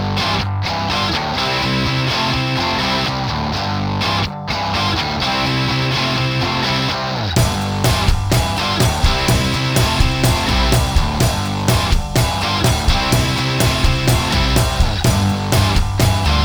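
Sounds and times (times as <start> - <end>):
rock music: 0.2 - 16.4.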